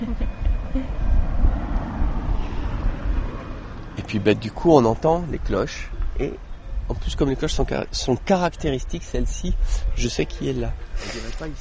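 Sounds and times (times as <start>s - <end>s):
cars passing by on a road: 0.0s - 11.5s
speech: 4.1s - 11.5s.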